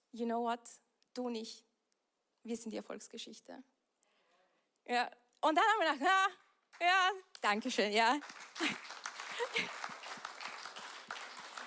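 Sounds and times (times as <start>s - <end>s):
speech: 0.1s - 1.7s, 2.4s - 3.7s, 4.8s - 9.8s
audience clapping: 6.7s - 11.6s.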